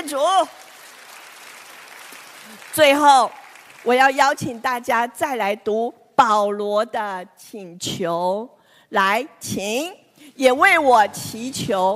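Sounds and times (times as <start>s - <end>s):
speech: 0.1s - 0.7s, 2.5s - 11.9s
audience applause: 0.5s - 4.0s.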